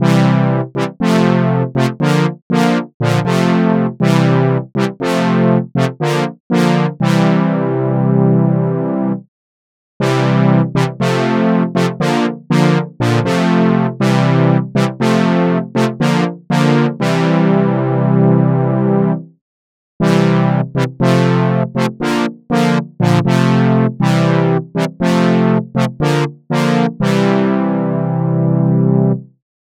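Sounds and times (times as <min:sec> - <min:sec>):
Jupiter 8 low brass synthesizer: 0:00.0 - 0:09.3, 0:10.0 - 0:19.3, 0:20.0 - 0:29.4.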